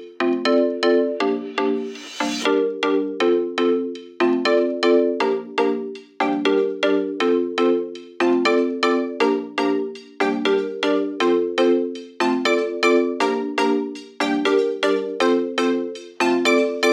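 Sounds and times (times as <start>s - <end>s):
rave music mix: 0.4s - 3.2s, 4.5s - 16.9s.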